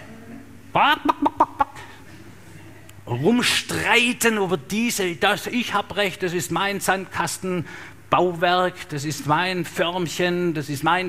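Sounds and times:
speech: 0:00.7 - 0:01.4, 0:03.1 - 0:11.0
person imitating a chicken with squawk and clucks: 0:00.8 - 0:01.9.

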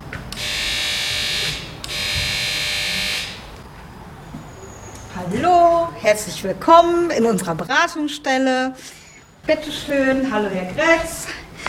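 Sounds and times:
door buzzer ringing: 0:00.3 - 0:03.6
speech: 0:06.1 - 0:11.4.

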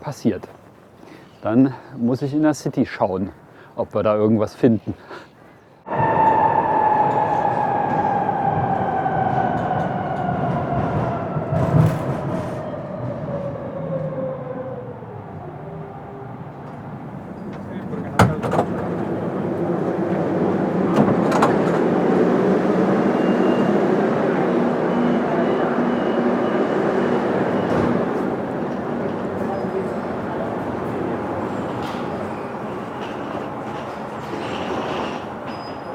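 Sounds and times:
speech: 0:00.1 - 0:00.6, 0:01.4 - 0:05.3
subway train ride: 0:05.8 - 0:35.9.

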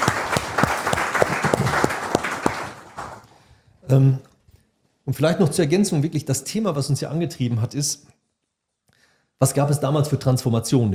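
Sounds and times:
audience applause: 0:00.0 - 0:03.3
speech: 0:03.9 - 0:04.3, 0:05.1 - 0:08.1, 0:09.4 - 0:10.9.

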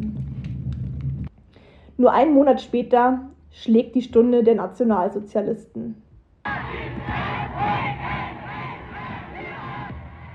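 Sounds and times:
speech: 0:02.0 - 0:06.0
crowd cheering and jubilation: 0:06.5 - 0:10.3.

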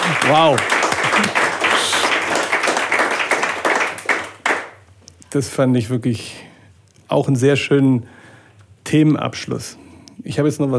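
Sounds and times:
applause: 0:00.0 - 0:04.8
speech: 0:00.2 - 0:01.4, 0:05.3 - 0:06.5, 0:07.1 - 0:08.2, 0:08.9 - 0:10.7.

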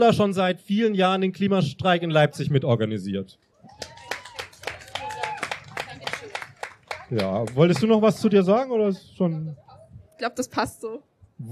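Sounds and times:
speech: 0:00.0 - 0:03.9, 0:07.1 - 0:09.6, 0:10.2 - 0:11.5
applause: 0:03.7 - 0:08.5.

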